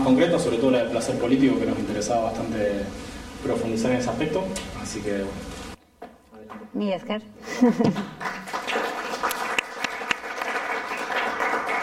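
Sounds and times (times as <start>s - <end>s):
speech: 0.0s - 5.6s, 6.5s - 8.3s
laughter: 7.4s - 8.4s
audience applause: 7.9s - 11.8s.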